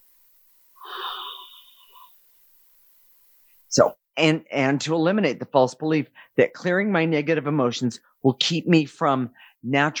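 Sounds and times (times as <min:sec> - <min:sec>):
person taking a slow deep breath: 0:00.8 - 0:02.2
speech: 0:03.7 - 0:09.9.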